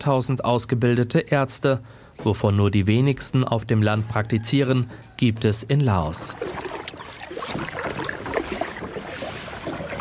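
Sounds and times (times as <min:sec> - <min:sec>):
speech: 0:00.0 - 0:06.8
paddling a rented kayak on the Nam U river: 0:06.3 - 0:09.9.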